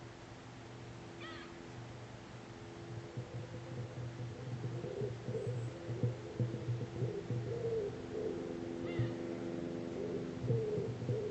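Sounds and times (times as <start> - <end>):
juvenile honey buzzard chicken call: 1.2 - 1.6, 3.0 - 11.2.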